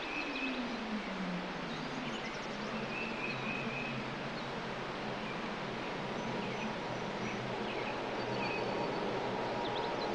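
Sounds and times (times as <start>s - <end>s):
Boeing airplane: 0.2s - 10.1s.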